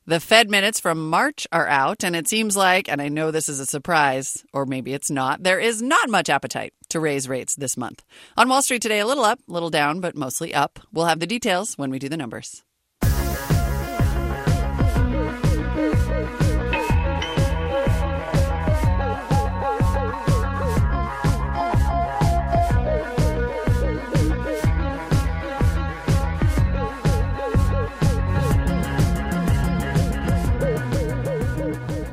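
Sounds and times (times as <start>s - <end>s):
speech: 0.1s - 12.7s
TV singing competition theme music, driving electronic: 13.0s - 32.1s.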